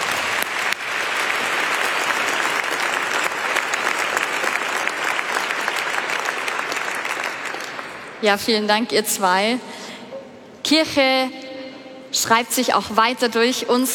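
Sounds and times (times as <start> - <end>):
audience applause: 0.0 - 8.2
speech: 8.2 - 9.9, 10.7 - 11.4, 12.1 - 13.9.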